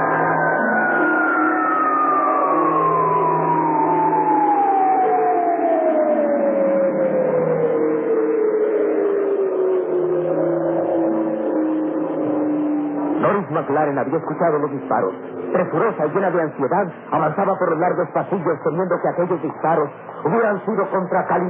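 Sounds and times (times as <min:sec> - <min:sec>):
alarm siren: 0:00.0 - 0:21.4
speech: 0:13.7 - 0:21.4.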